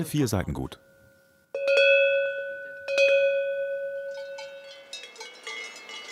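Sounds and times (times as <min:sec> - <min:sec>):
traditional cowbells ringing on a herd in Alentejo: 0:01.6 - 0:06.1.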